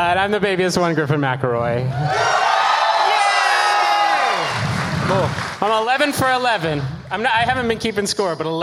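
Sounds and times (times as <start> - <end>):
speech: 0.0 - 2.4, 5.1 - 8.6
live audience cheering: 1.9 - 6.8.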